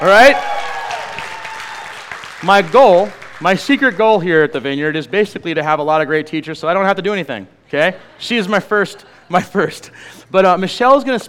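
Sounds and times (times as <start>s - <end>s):
speech: 0.0s - 0.5s, 2.4s - 11.2s
church audience at the Vineyard clapping: 0.0s - 4.4s.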